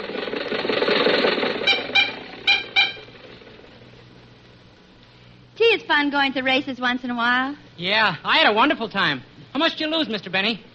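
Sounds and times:
car engine: 0.0s - 4.8s
speech: 6.0s - 10.7s.

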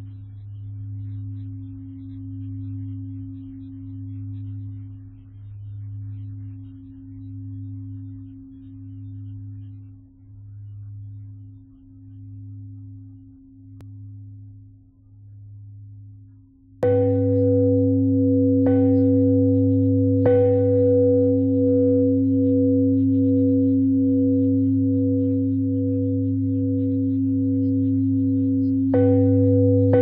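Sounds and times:
bells ringing: 16.8s - 29.9s.

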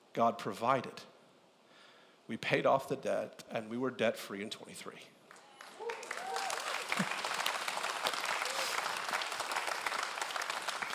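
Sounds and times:
speech: 0.2s - 1.1s, 2.3s - 5.2s
audience applause: 5.3s - 10.9s.

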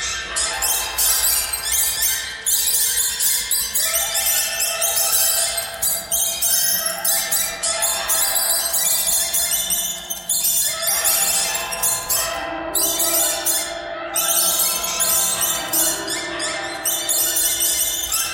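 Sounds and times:
birds: 0.0s - 18.3s.

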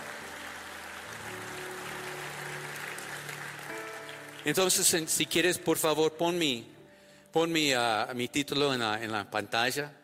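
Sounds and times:
loud audience applause: 0.0s - 5.1s
speech: 4.4s - 6.7s, 7.3s - 10.0s.

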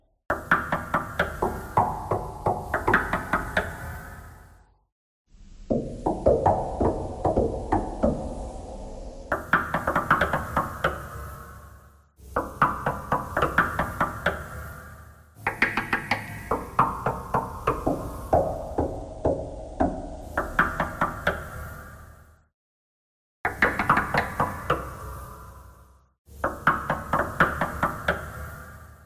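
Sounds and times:
knocking thread noise: 0.3s - 3.8s, 5.7s - 8.3s, 9.3s - 11.1s, 12.3s - 14.4s, 15.4s - 21.6s, 23.5s - 25.0s, 26.4s - 28.3s.

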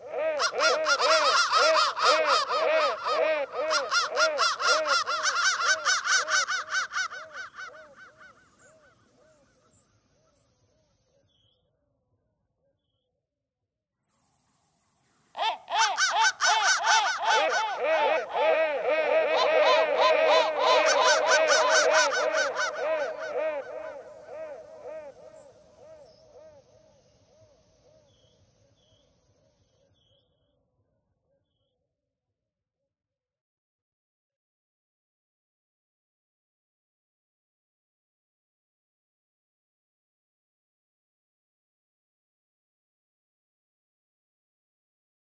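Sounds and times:
crow thread noise: 0.0s - 10.5s, 15.4s - 29.0s.

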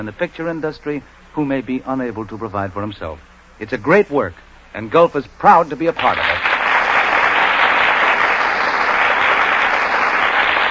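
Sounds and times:
speech: 0.0s - 6.4s
studio audience applause: 6.0s - 10.6s.

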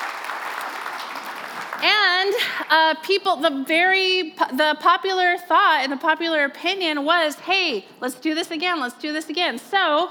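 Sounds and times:
audience applause: 0.0s - 2.6s
speech: 2.7s - 10.0s.

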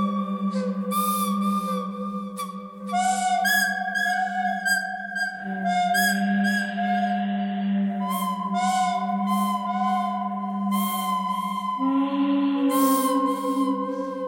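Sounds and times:
pentatonic melody: 0.0s - 14.2s.

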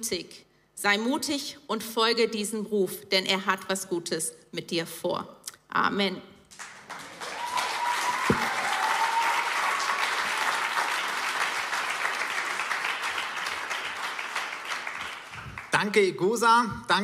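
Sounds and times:
speech: 0.0s - 6.7s, 15.8s - 17.0s
audience applause: 6.5s - 15.8s.

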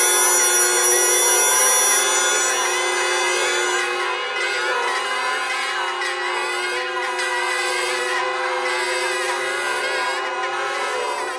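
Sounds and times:
bagpipe geese thread noise: 0.0s - 11.2s.

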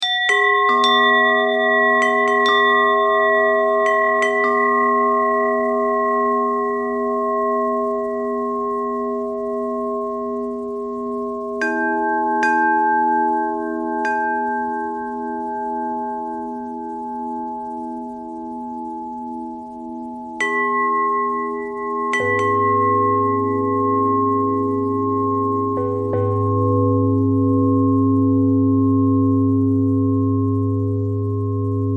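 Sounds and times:
bell: 0.0s - 31.9s.

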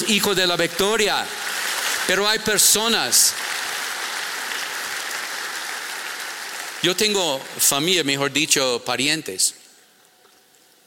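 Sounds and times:
speech: 0.0s - 3.6s, 6.8s - 9.6s
church congregation clapping during a Spanish-language service: 0.0s - 8.7s.

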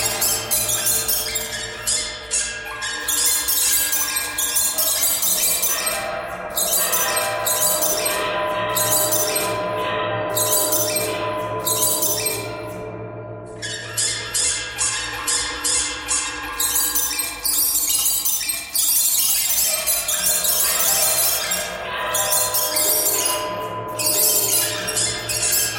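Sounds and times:
birds singing: 0.0s - 25.7s.

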